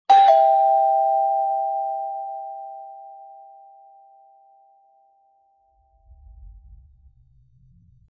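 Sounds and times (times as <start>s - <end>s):
doorbell ringing: 0.1s - 4.7s.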